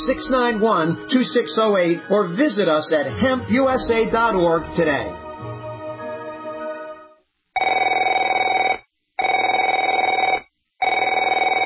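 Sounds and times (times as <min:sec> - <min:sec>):
speech: 0:00.0 - 0:05.2
telephone ringing: 0:07.6 - 0:11.6.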